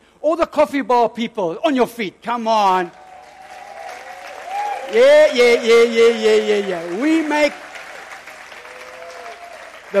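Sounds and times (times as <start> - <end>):
speech: 0.2 - 3.0, 4.9 - 7.6
audience applauding: 2.9 - 9.9.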